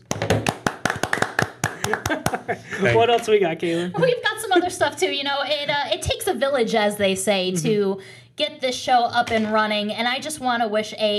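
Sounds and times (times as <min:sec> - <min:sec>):
round of applause: 0:00.0 - 0:02.5
laughter: 0:01.7 - 0:03.2
speech: 0:01.9 - 0:11.1.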